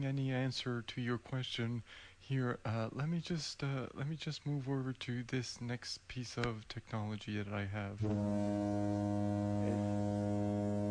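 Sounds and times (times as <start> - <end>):
speech: 0.0 - 10.8
foghorn: 8.0 - 10.8.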